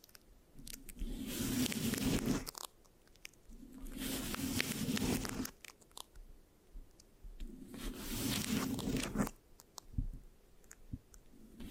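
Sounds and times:
scratching on a microphone: 0:00.8 - 0:02.6, 0:03.6 - 0:05.6, 0:07.4 - 0:09.4, 0:11.4 - 0:11.6.

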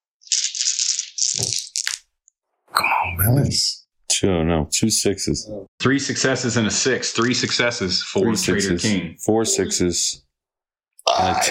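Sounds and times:
dice being rolled: 0:00.2 - 0:02.0
speech: 0:01.4 - 0:01.6, 0:03.2 - 0:10.3, 0:11.1 - 0:11.4.

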